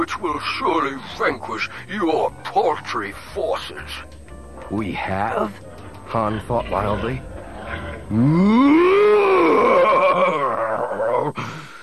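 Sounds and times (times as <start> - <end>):
speech: 0.1 - 7.3, 8.1 - 8.8
rough rumbling growls: 5.4 - 11.3
performed scream of fury: 8.1 - 11.3.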